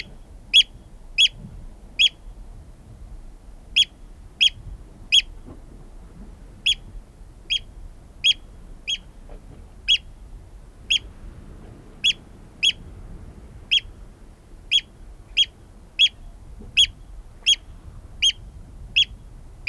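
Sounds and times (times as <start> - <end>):
Eurasian oystercatcher piping calls: 0.6 - 1.4, 6.6 - 6.8, 7.5 - 9.1, 9.9 - 10.1, 10.9 - 11.1, 12.0 - 12.8, 13.7 - 13.9, 14.7 - 18.4, 19.0 - 19.6.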